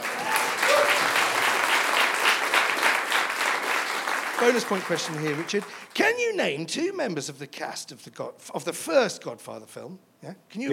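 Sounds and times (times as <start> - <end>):
clapping: 0.0 - 6.0
speech: 4.4 - 10.7.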